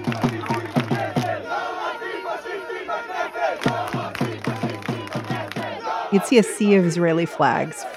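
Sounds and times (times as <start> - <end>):
rapid drumbeats: 0.0 - 1.7, 3.6 - 6.4
protest crowd chanting and shouting in the street: 0.0 - 7.9
speech: 6.1 - 7.9.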